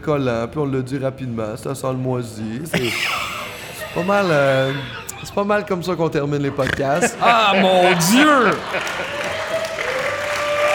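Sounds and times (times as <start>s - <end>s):
speech: 0.0s - 9.2s
laughter: 2.7s - 5.8s, 6.4s - 10.5s
applause: 8.0s - 10.7s.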